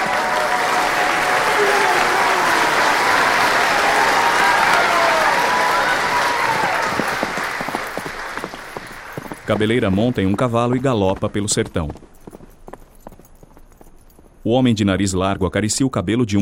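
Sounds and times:
faint voices and whoops: 0.0 - 7.6
dancers applauding: 0.0 - 11.0
speech: 9.5 - 12.1, 14.4 - 16.3.

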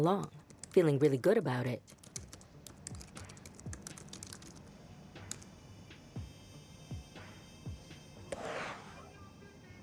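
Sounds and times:
speech: 0.0 - 2.0
typing on a computer keyboard: 1.9 - 4.6.

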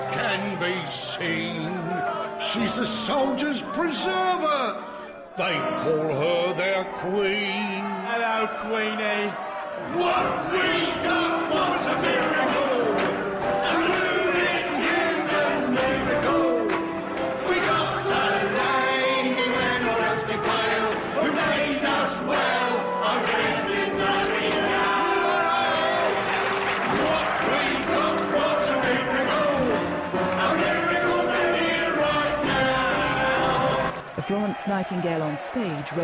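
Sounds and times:
speech: 0.0 - 12.8, 34.6 - 36.0
theatre audience shouting and cheering: 0.0 - 36.0
theatre audience applause: 7.6 - 36.0.

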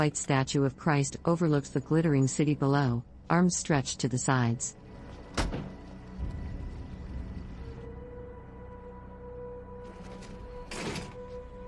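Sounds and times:
speech: 0.0 - 4.8
low steady hum: 0.0 - 10.6
car door thudding as a man steps out of a parked car: 5.3 - 5.8.

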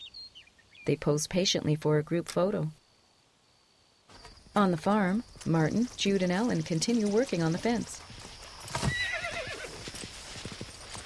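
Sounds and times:
speech: 0.8 - 2.8, 4.6 - 8.1
horse hooves clip-clopping: 4.1 - 11.0
horse whinny: 8.7 - 9.8.

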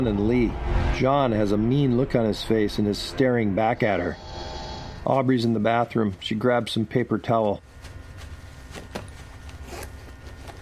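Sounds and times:
speech: 0.0 - 4.4, 5.0 - 7.7
low steady hum: 0.0 - 10.6
purse being opened in a bathroom: 7.6 - 10.6.

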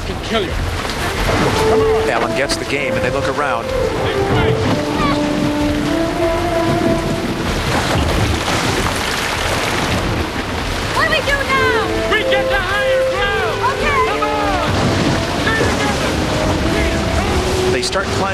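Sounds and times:
rushing water surging down a flight of stairs: 0.0 - 18.3
speech: 0.1 - 0.7, 1.3 - 4.6, 17.9 - 18.3
tonal music-like swells: 1.5 - 8.4, 11.4 - 18.3.

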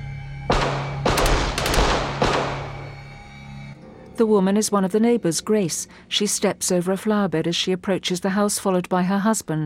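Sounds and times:
gunshots in a film scene as an armed couple shoots people beside a truck: 0.5 - 3.1
speech: 4.2 - 9.6.

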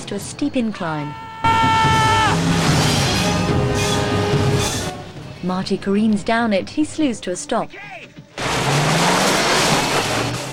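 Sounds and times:
speech: 0.1 - 2.6, 5.4 - 8.0
car engine roaring while reversing into a cave: 2.0 - 5.3, 8.3 - 10.5.

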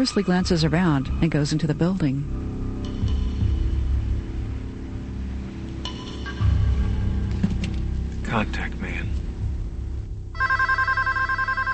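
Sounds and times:
speech: 0.0 - 2.4, 8.4 - 8.8
noise: 0.0 - 11.7
telephone ringing in an apartment: 10.4 - 11.7.

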